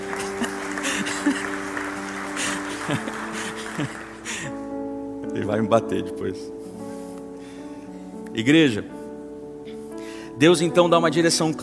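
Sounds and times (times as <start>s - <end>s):
laughter: 0.0s - 4.5s
audience clapping: 0.0s - 4.6s
speech: 2.9s - 3.1s, 5.5s - 6.6s, 8.4s - 9.0s, 10.4s - 11.6s.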